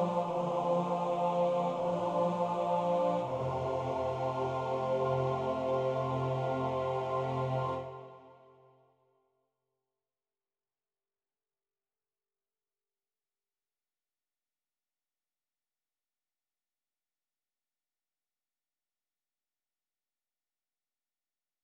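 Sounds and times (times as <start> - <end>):
tenor singing a prayer: 0.0 - 8.3.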